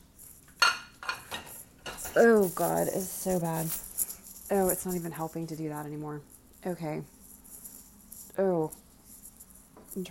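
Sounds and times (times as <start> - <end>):
plates and cutlery clinking into a dishwasher: 0.5 - 2.5
speech: 2.2 - 3.9, 4.5 - 7.2, 8.4 - 8.8.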